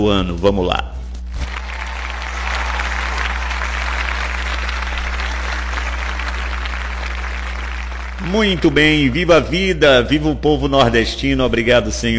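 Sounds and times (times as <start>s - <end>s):
speech: 0.0s - 1.0s, 8.2s - 12.1s
applause: 1.4s - 8.8s.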